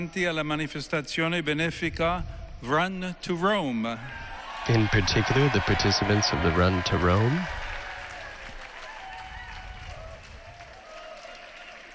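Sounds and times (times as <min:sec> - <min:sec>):
speech: 0:00.0 - 0:07.6
faint cheers and voices: 0:03.9 - 0:11.9
crowd applauding in a public square: 0:04.4 - 0:11.9.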